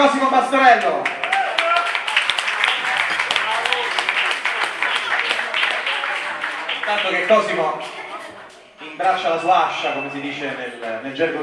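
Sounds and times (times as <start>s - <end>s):
speech: 0.0s - 1.2s, 6.9s - 8.0s, 8.9s - 11.4s
audience applause: 1.0s - 8.4s.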